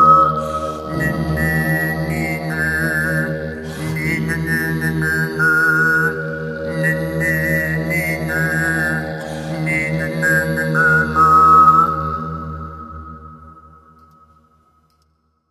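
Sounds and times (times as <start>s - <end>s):
overtone singing: 0.0s - 12.2s.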